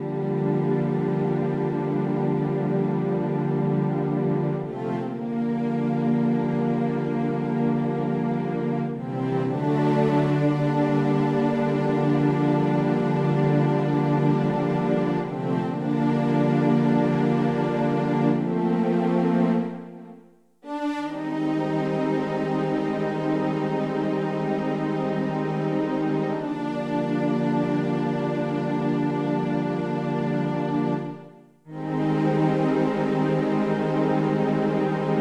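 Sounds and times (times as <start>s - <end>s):
strings: 0.0s - 35.1s.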